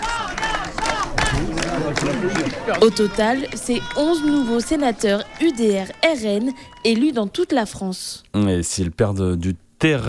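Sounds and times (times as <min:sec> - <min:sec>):
crowd of political party supporters cheering and shouting: 0:00.0 - 0:07.3
speech: 0:02.2 - 0:10.0.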